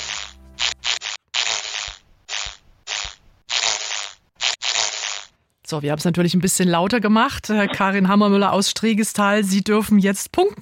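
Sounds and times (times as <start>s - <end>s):
ladybird whirring as it flies in: 0.0s - 5.3s
speech: 5.7s - 10.6s.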